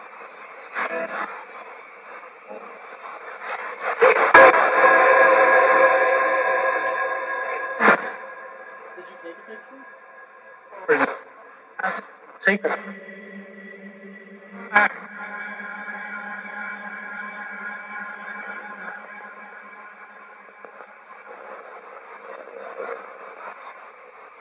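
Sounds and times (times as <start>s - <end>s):
spirit box radio sweep in a library: 3.8s - 21.7s.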